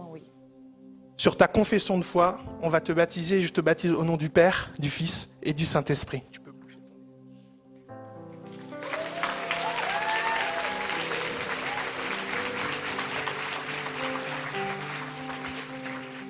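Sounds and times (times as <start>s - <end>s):
speech: 1.2s - 6.4s
audience applause: 8.5s - 16.2s
people cheering and whooping: 8.8s - 13.7s
sustained musical tones: 10.9s - 16.2s.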